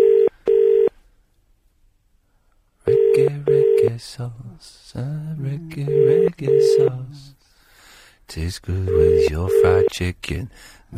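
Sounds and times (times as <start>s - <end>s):
telephone dialing tones: 0.0s - 0.9s, 2.9s - 3.9s, 5.9s - 7.0s, 8.9s - 9.9s
speech: 4.0s - 7.5s, 8.3s - 10.9s.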